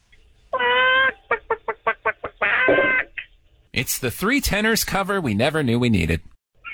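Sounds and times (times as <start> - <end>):
high-pitched voice imitating chicken clucking and squawking: 0.5 - 3.3
speech: 3.8 - 6.3.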